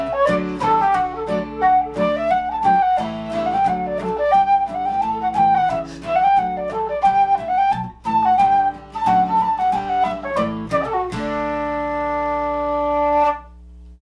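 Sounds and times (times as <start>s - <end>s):
flute: 0.0s - 13.6s
guitar: 0.0s - 14.0s.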